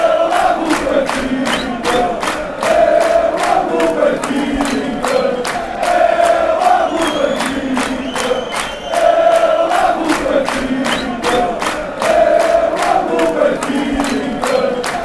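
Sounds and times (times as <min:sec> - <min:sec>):
football crowd chanting: 0:00.0 - 0:15.0.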